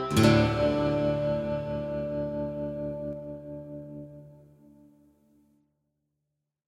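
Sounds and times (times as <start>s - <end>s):
menu music: 0.1s - 3.8s.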